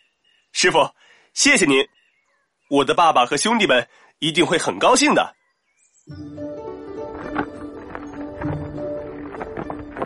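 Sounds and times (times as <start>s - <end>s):
speech: 0.6s - 2.0s, 2.7s - 5.4s, 6.1s - 6.6s
donkey hooves clopping while walking: 6.5s - 10.0s.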